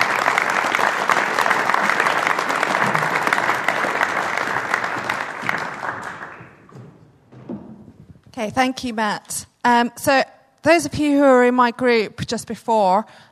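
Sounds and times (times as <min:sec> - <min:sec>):
audience applause: 0:00.0 - 0:06.9
speech: 0:08.4 - 0:13.3.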